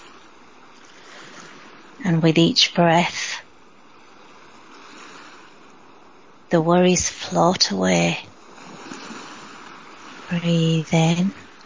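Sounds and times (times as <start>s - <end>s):
ocean waves: 0.0s - 11.6s
speech: 2.1s - 3.3s, 6.5s - 8.3s, 10.3s - 11.4s.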